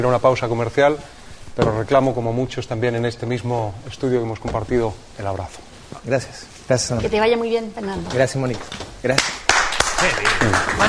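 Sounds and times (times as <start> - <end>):
speech: 0.0 - 9.4, 10.0 - 10.8
news presenter clapping in a television studio: 9.1 - 10.8.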